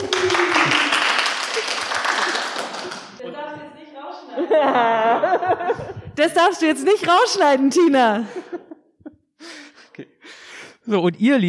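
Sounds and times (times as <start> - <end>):
group clapping hands: 0.0 - 3.2
people laughing: 0.0 - 10.2
speech: 4.6 - 8.5, 10.9 - 11.4.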